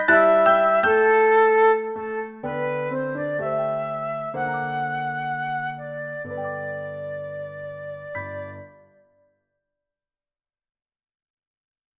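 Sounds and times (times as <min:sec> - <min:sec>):
synth flute: 0:00.0 - 0:09.1.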